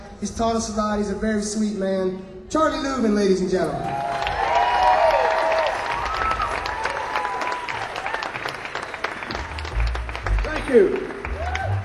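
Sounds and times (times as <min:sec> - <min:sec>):
speech: 0:00.2 - 0:04.1, 0:10.7 - 0:11.0
cheers and whoops: 0:03.8 - 0:08.6, 0:11.2 - 0:11.8
audience applause: 0:03.9 - 0:11.8.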